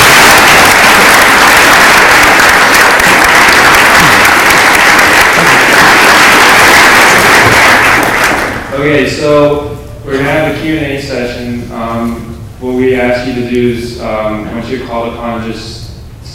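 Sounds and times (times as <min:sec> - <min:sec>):
round of applause: 0:00.0 - 0:08.7
speech: 0:08.8 - 0:15.7.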